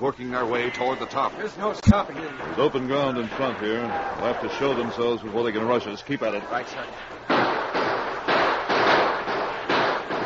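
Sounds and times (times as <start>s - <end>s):
speech: 0.0s - 7.3s
gunfire in a gunfight: 7.3s - 10.2s.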